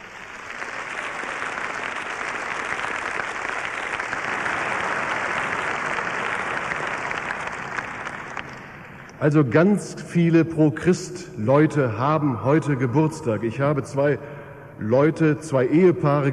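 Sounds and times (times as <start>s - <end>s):
audience applause: 0.0s - 9.2s
speech: 9.2s - 16.3s.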